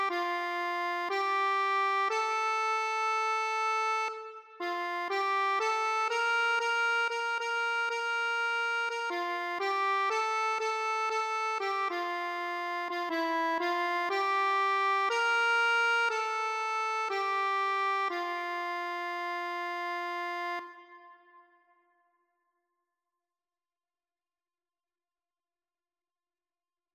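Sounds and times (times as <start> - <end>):
accordion: 0.0 - 21.3.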